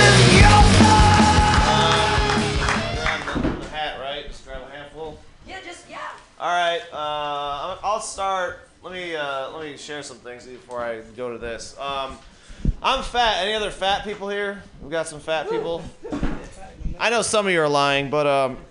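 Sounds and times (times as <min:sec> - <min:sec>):
audience clapping: 0:00.2 - 0:03.7
speech: 0:08.0 - 0:18.6.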